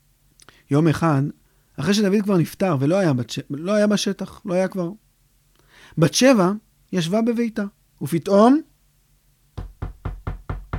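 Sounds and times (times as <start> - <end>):
speech: 0.7 - 5.0, 5.8 - 8.7
knocking on a door: 9.6 - 10.7.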